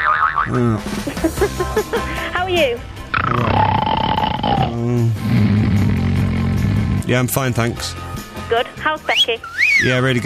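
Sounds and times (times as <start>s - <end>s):
cartoonish comedy boing sound effect: 0.0s - 0.7s
speech: 0.5s - 5.8s, 7.1s - 10.2s.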